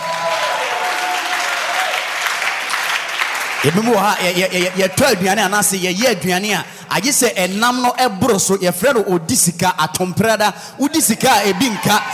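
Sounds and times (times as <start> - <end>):
audience clapping: 0.0 - 7.6
speech: 3.6 - 12.1.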